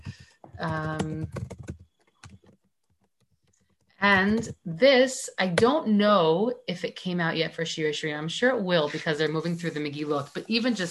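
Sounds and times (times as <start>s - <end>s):
keyboard typing a chat message: 0.0s - 4.6s
speech: 0.6s - 1.6s, 4.0s - 10.8s.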